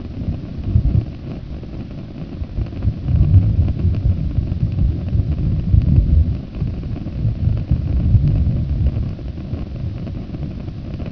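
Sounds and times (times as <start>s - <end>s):
rumble: 0.0s - 11.1s.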